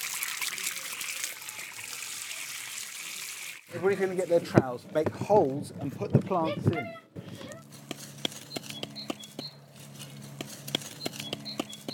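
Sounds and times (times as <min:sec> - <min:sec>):
water pouring onto plants: 0:00.0 - 0:03.7
speech: 0:03.7 - 0:07.0.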